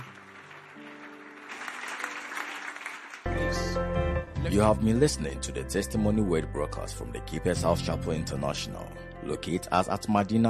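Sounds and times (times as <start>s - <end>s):
audience clapping hands: 0.0s - 4.0s
speech: 3.8s - 10.4s.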